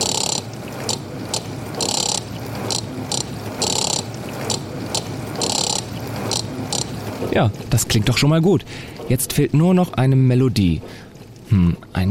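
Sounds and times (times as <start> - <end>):
blender whirring: 0.0 - 7.4
dishwasher rhythm: 0.0 - 12.0
speech: 7.4 - 12.0.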